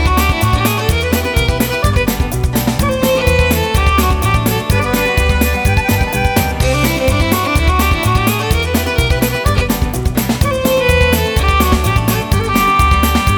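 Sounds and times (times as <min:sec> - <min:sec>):
park ambience: 0:00.0 - 0:13.3.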